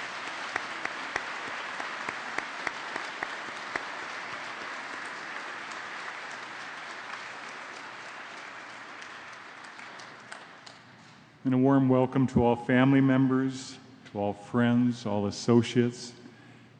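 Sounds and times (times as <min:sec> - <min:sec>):
audience applause welcoming guests: 0:00.0 - 0:10.8
sharp individual claps: 0:00.0 - 0:11.3
speech: 0:11.4 - 0:16.2.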